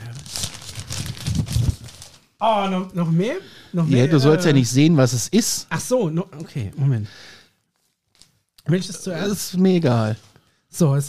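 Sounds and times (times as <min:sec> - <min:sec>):
gift paper tearing: 0:00.0 - 0:02.3
gift paper crinkling as a gift is unwrapped: 0:00.0 - 0:02.4, 0:07.6 - 0:08.6
speech: 0:02.4 - 0:07.4, 0:08.7 - 0:11.0.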